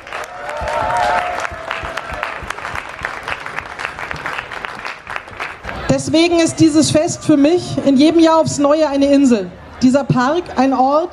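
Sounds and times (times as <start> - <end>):
crowd applause: 0.0 - 5.9
speech: 6.0 - 11.1.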